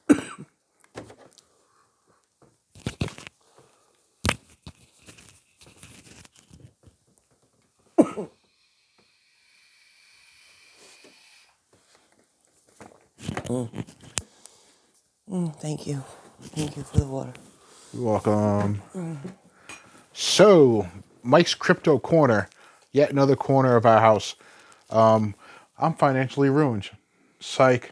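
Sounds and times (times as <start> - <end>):
person coughing after a drink went down wrong: 0.1 - 0.5, 8.0 - 8.4, 18.0 - 19.4
speech: 13.5 - 14.0, 15.4 - 19.4, 20.2 - 27.9.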